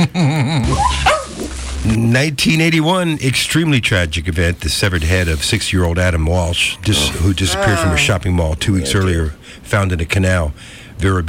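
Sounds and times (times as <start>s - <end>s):
dog named Bailey whining and crying: 0.6s - 1.4s, 7.0s - 8.1s
speech: 2.2s - 11.2s.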